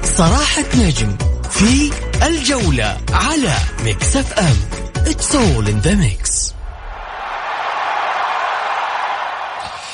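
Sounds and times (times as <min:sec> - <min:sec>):
speech: 0:00.2 - 0:06.5
large stadium crowd roar: 0:06.5 - 0:09.9.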